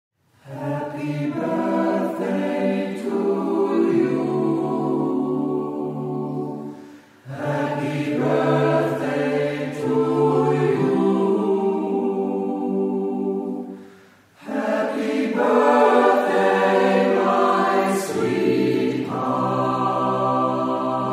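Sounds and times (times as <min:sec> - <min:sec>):
birthday song: 0:00.4 - 0:21.1.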